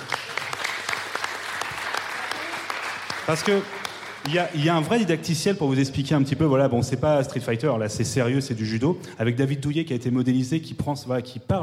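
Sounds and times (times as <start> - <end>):
audience applause: 0.0 - 4.8
speech: 3.3 - 11.6.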